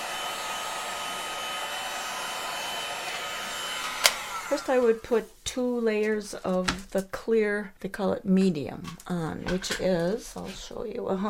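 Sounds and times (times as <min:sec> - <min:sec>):
heat gun blowing: 0:00.0 - 0:05.2
speech: 0:04.5 - 0:11.2.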